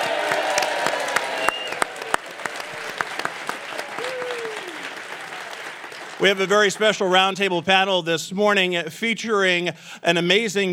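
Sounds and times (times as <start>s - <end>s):
morning audience applauding at a live roundtable panel: 0.0s - 7.4s
speech: 6.2s - 10.7s.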